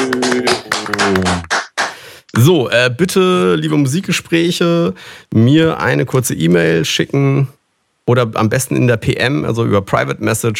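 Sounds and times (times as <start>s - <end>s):
applause: 0.0s - 2.1s
speech: 0.1s - 1.5s, 2.4s - 10.5s.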